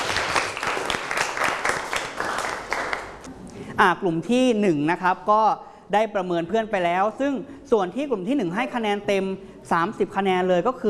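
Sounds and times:
applause from the class: 0.0s - 3.3s
speech: 3.8s - 10.8s.

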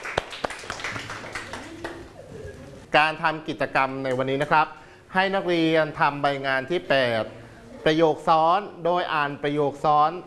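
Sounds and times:
students clapping in a classroom lesson: 0.0s - 2.2s
speech: 2.9s - 10.2s.

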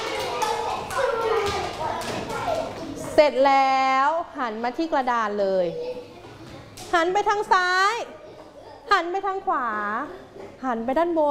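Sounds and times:
children clapping for all groups: 0.0s - 3.0s
speech: 3.2s - 5.9s, 6.9s - 8.2s, 8.9s - 11.2s.

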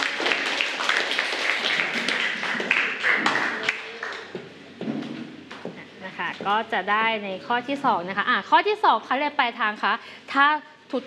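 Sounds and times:
students applauding a classmate: 0.0s - 4.4s
speech: 6.4s - 11.0s.

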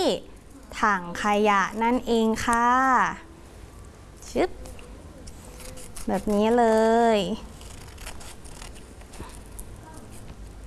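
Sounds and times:
speech: 0.0s - 3.2s, 4.3s - 4.7s, 6.1s - 7.5s
noise: 0.0s - 10.6s
scissors cutting paper along a drawn line: 4.6s - 10.3s.

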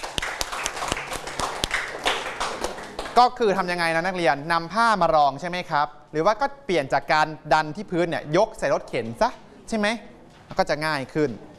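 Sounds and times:
classroom students clapping: 0.0s - 3.3s
speech: 3.2s - 11.5s.

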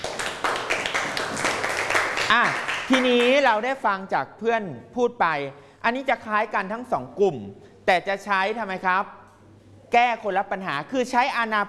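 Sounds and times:
audience clapping: 0.0s - 3.5s
speech: 2.3s - 9.2s, 9.9s - 11.6s.

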